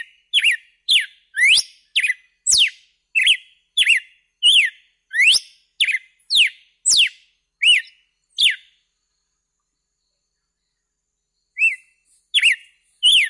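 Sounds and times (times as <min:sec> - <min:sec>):
red-cowled cardinal whistled song: 0:00.0 - 0:08.8, 0:11.5 - 0:13.2.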